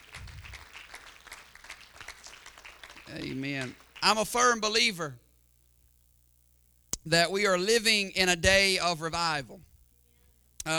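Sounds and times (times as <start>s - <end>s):
crowd audience hand clapping: 0.0s - 4.7s
speech: 3.1s - 5.2s, 7.1s - 9.7s.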